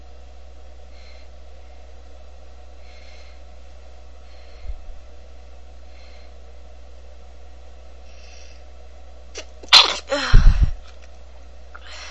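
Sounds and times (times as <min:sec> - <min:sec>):
woman stifling: 0:09.8 - 0:10.9.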